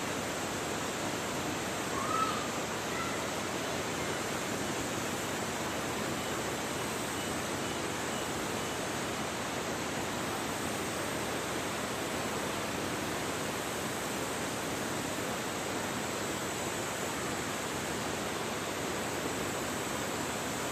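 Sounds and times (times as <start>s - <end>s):
waterfall roaring: 0.0s - 20.7s
faint tone or chirp: 1.9s - 4.3s.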